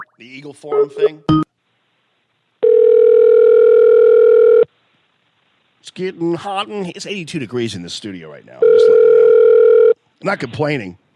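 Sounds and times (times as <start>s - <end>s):
speech: 0.2s - 1.4s, 6.0s - 9.0s, 10.2s - 11.0s
telephone dial tone: 2.6s - 4.7s, 8.6s - 10.0s.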